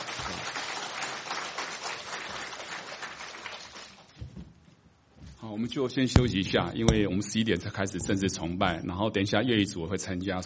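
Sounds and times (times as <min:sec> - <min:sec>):
audience applause: 0:00.0 - 0:04.1
speech: 0:05.5 - 0:10.4.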